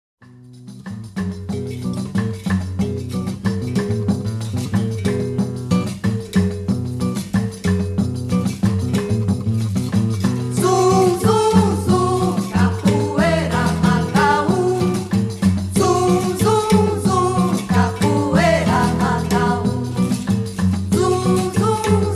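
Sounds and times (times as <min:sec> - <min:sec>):
berimbau bossa nova rhythm: 0:00.2 - 0:22.1.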